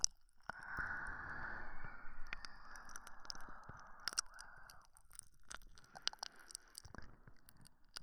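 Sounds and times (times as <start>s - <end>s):
ear licking ASMR: 0.5s - 6.5s.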